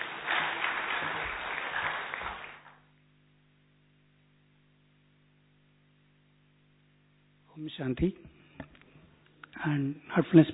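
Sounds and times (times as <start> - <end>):
loud applause: 0.0 - 2.8
speech: 7.6 - 8.3, 9.6 - 10.5.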